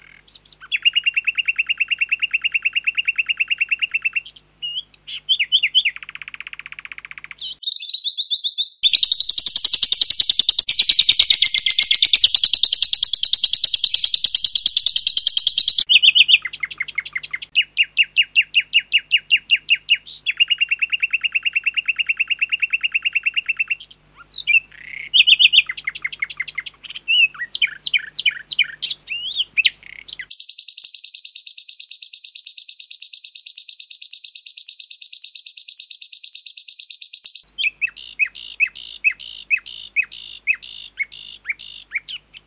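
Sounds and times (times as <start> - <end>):
lovebird calling: 0.0 - 42.4
nightingale singing: 0.0 - 42.4.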